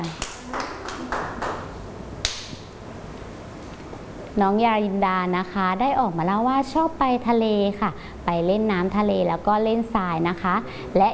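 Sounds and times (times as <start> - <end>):
children clapping: 0.1 - 2.5
speech: 4.4 - 11.1.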